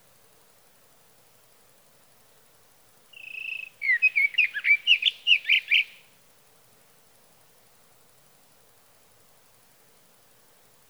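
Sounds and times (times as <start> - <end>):
Sage Thrasher song with whistled note and warbled phrases: 3.2 - 6.0.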